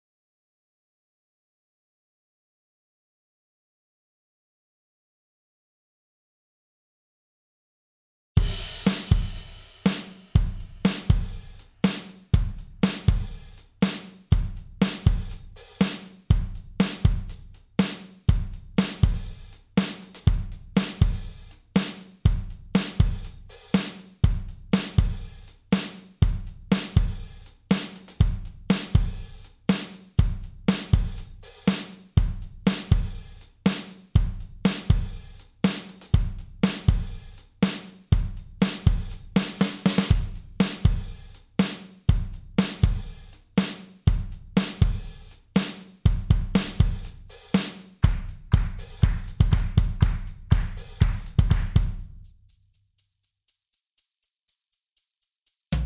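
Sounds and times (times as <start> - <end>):
drums: 8.4 - 52.6.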